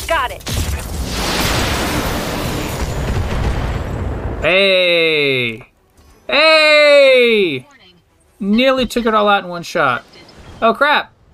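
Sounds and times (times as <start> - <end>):
speech: 0.2 - 1.3, 4.4 - 5.7, 6.3 - 7.7, 8.4 - 11.1
big video game explosion: 0.4 - 5.4.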